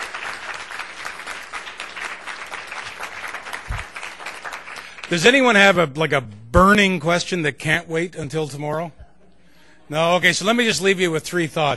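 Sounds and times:
audience applause: 0.0s - 5.2s
speech: 5.1s - 9.0s, 9.9s - 11.7s.

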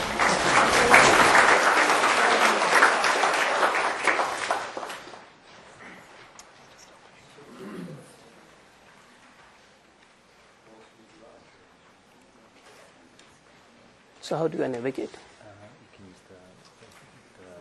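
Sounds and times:
audience applause: 0.0s - 5.4s
speech: 14.3s - 15.3s.

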